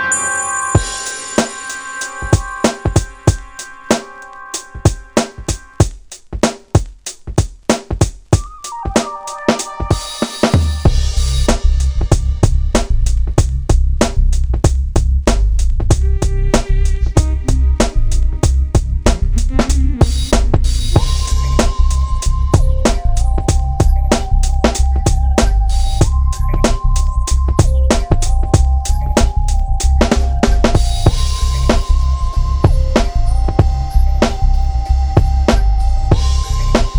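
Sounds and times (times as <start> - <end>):
funk music: 0.1 - 36.9.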